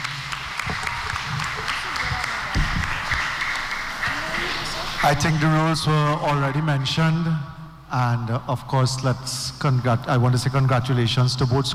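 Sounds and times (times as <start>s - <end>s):
audience applause: 0.0s - 6.4s
speech: 5.0s - 11.7s.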